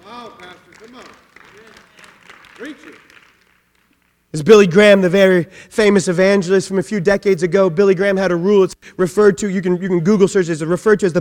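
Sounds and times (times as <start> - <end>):
audience applause: 0.0 - 4.2
speech: 2.6 - 3.1, 4.4 - 11.1.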